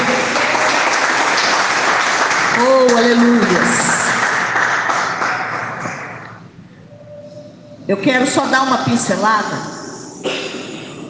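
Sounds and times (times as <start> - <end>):
people clapping: 0.0 - 6.4
speech: 2.6 - 3.8, 7.9 - 9.8.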